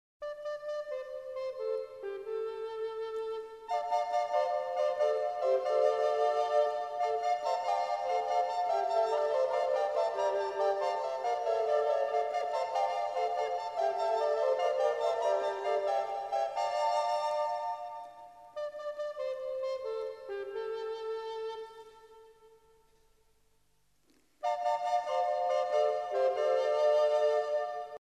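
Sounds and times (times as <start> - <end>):
prelude piece in E minor: 0.2 - 22.8, 24.4 - 28.0.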